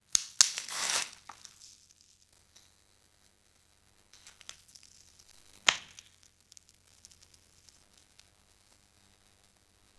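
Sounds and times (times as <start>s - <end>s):
apple cut in half: 0.2s - 1.6s.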